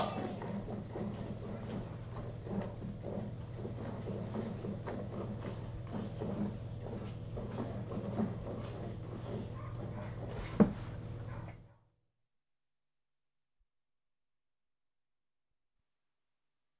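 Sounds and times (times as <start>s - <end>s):
one goat being hand-milked: 0.0s - 11.6s.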